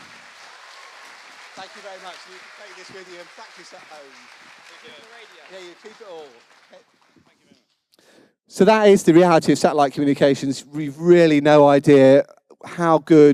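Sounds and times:
audience round of applause: 0.0 - 7.6
speech: 1.6 - 7.1, 8.5 - 13.3.

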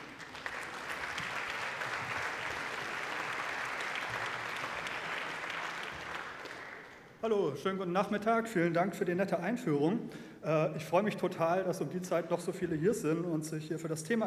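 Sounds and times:
audience applause: 0.0 - 7.2
speech: 7.2 - 14.2.

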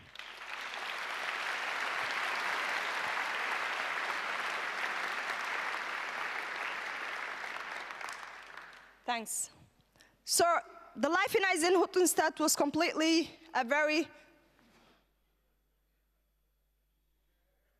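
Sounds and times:
audience applause: 0.0 - 8.9
speech: 9.1 - 9.6, 10.3 - 14.3.

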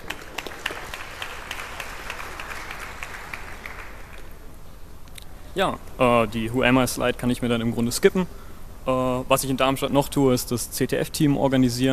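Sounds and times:
audience applause: 0.0 - 4.4
speech: 5.6 - 11.9.

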